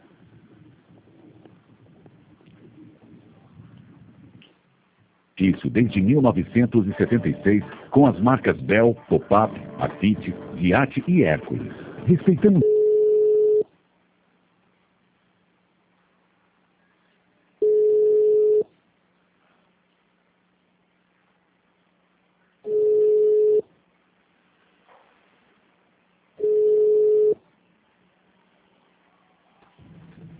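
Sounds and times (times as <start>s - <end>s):
faint low hum: 0.0s - 30.3s
speech: 5.4s - 12.7s
telephone ringing tone on a call: 12.5s - 13.7s, 17.6s - 18.7s, 22.7s - 23.7s, 26.4s - 27.4s.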